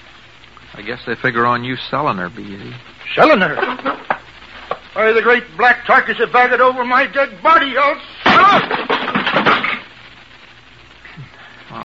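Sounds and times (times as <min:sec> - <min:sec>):
speech: 0:00.8 - 0:04.0, 0:05.0 - 0:09.0
wooden chair breaking under someone: 0:08.2 - 0:09.8.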